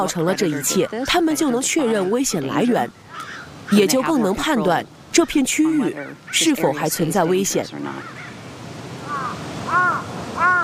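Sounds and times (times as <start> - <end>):
speech: 0.0 - 8.2
crows cawing: 0.1 - 1.1, 2.9 - 4.0, 7.9 - 8.4, 9.0 - 10.6.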